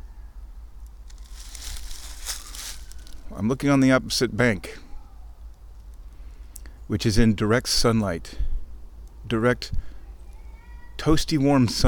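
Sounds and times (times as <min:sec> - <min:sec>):
birds rustling and kicking through dry leaves: 0:00.9 - 0:03.4
speech: 0:03.3 - 0:04.8, 0:06.9 - 0:08.5, 0:09.2 - 0:09.9, 0:11.0 - 0:11.8.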